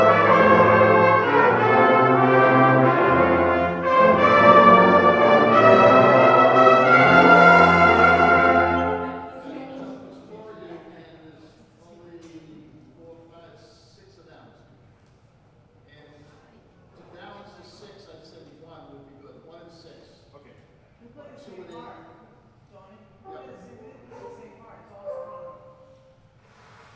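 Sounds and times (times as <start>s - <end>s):
brass band playing a parade tune: 0.0s - 10.2s, 25.0s - 26.1s.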